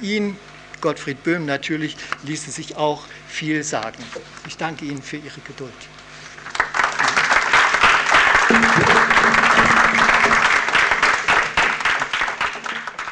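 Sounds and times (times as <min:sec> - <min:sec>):
speech: 0:00.0 - 0:06.0
audience applause after a lecture: 0:06.5 - 0:13.1.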